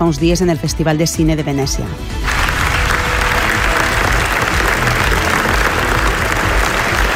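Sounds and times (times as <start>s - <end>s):
speech: 0.1s - 2.7s
large audience applause at a film festival: 2.2s - 7.1s.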